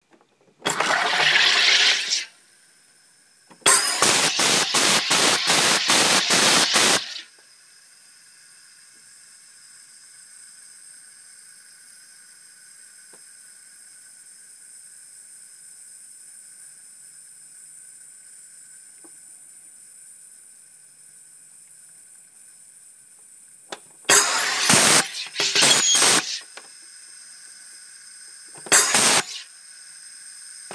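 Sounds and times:
hydraulic hiss: 0:00.6 - 0:14.6, 0:24.1 - 0:30.7.

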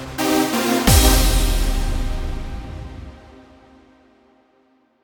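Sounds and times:
arpeggio jingle: 0:00.2 - 0:03.5.

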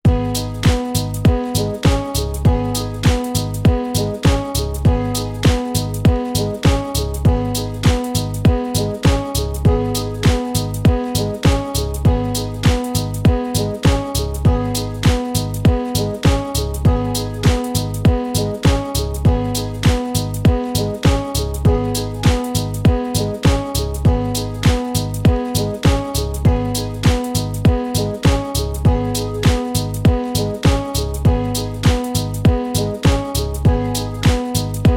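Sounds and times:
joyful music for celebrations and success: 0:00.0 - 0:34.9.

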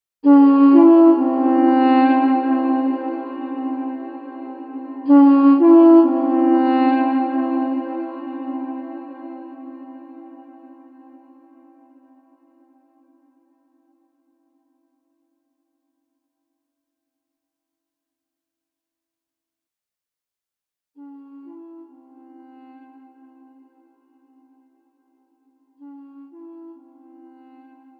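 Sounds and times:
duduk: 0:00.2 - 0:12.9, 0:21.0 - 0:27.9.

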